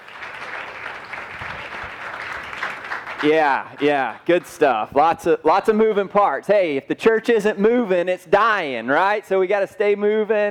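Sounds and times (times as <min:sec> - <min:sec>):
church congregation applauding its guests: 0:00.0 - 0:04.8
speech: 0:03.2 - 0:10.4.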